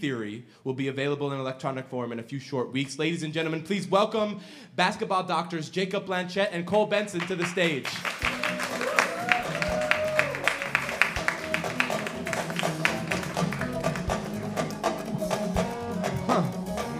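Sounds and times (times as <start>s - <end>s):
speech: 0.0s - 8.2s
Senegalese pop walk-up music on stage at a live show in Minnesota: 8.2s - 16.9s.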